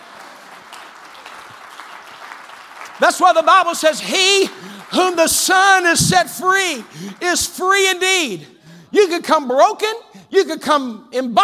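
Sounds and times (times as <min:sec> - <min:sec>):
audience clapping hands: 0:00.0 - 0:08.4
speech: 0:03.0 - 0:11.4.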